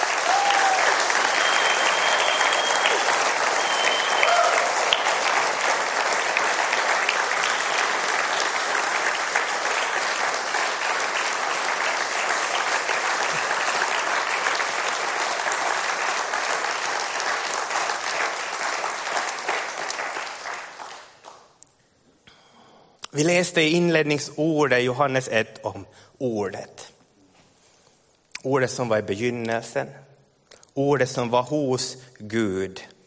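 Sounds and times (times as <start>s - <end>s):
sustained applause from a sizable audience: 0.0s - 21.5s
speech: 23.2s - 26.8s, 28.4s - 30.1s, 30.8s - 32.9s.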